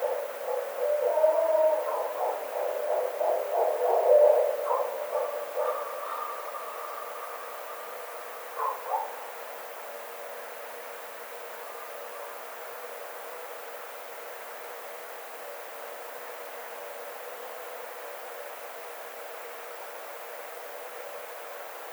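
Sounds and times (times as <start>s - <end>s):
Barred owl hooting: 0.0s - 7.8s.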